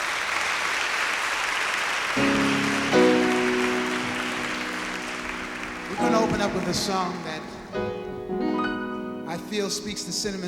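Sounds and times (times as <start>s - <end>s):
audience applause: 0.0s - 7.6s
sustained keyboard or organ chords: 2.2s - 10.4s
speech: 6.4s - 8.0s, 9.4s - 10.4s.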